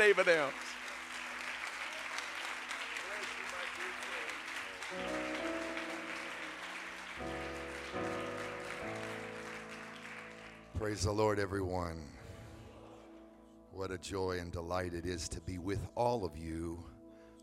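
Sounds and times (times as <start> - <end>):
speech: 0.0 - 0.7, 10.8 - 12.2, 13.8 - 16.9
audience applause: 0.0 - 11.3.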